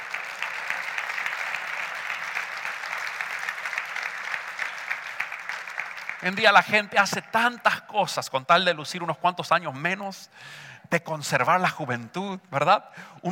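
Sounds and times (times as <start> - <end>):
audience applause: 0.0 - 7.6
speech: 6.2 - 13.3.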